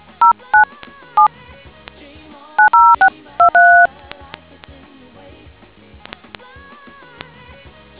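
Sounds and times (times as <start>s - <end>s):
DTMF tones: 2.6s - 3.9s.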